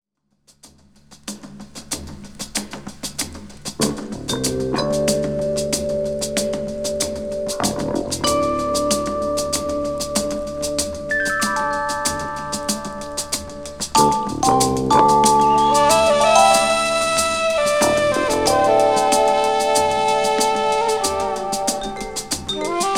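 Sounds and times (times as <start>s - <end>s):
gong: 4.8s - 22.9s.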